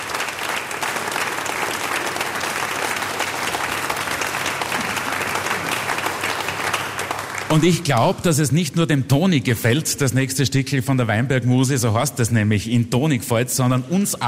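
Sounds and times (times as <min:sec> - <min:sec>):
audience applause: 0:00.0 - 0:08.2
speech: 0:07.6 - 0:14.2.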